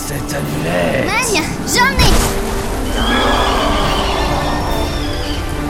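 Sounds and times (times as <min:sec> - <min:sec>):
speech: 0:00.1 - 0:02.4
riders' horses neighing and whinnying: 0:02.9 - 0:05.6.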